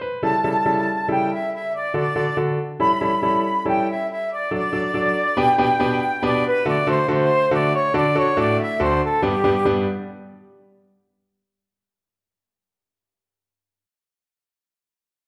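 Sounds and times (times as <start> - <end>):
flute: 0.0 - 10.6.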